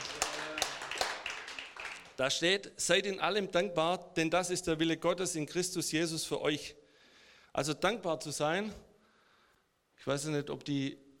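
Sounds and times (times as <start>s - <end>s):
scattered audience hand claps: 0.0s - 2.2s
speech: 2.2s - 6.8s, 7.6s - 8.9s, 10.0s - 11.0s.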